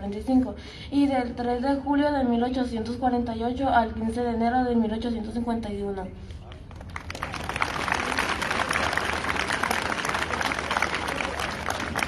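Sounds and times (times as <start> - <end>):
speech: 0.0 - 6.4
audience applause: 6.8 - 12.0.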